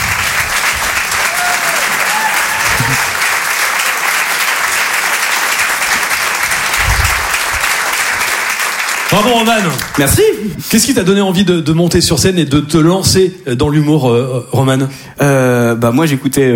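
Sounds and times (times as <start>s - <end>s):
audience applause and cheering: 0.0s - 10.5s
speech: 9.2s - 16.5s.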